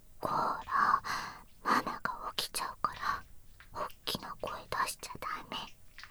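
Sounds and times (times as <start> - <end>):
person whispering: 0.2 - 1.1, 1.7 - 3.2, 3.8 - 5.8.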